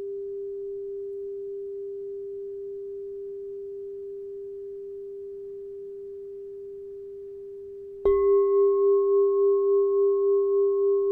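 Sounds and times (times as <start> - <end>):
six-inch G chime: 8.1 - 11.1.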